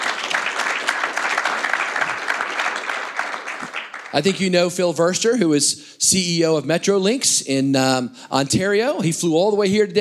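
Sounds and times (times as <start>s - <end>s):
audience applause at a public transit industry conference: 0.0s - 4.4s
speech: 4.1s - 9.9s.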